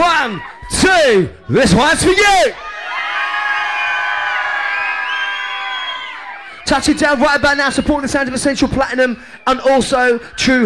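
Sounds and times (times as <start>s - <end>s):
crowd screaming and cheering at the Inferno dance hall: 0.0s - 10.2s
speech: 0.3s - 2.6s, 6.7s - 10.6s
crowd whistling at the Inferno dance hall: 2.6s - 10.6s.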